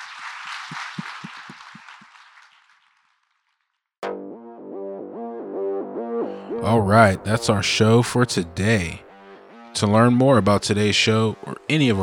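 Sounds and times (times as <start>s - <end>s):
audience applause: 0.0s - 3.1s
speech: 6.6s - 9.1s, 9.8s - 12.0s.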